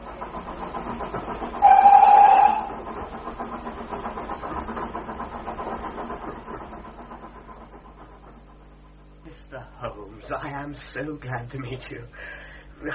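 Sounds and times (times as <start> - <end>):
train travelling on rails: 0.0 - 11.3
train whistle blast: 1.6 - 2.8
speech: 10.7 - 12.9.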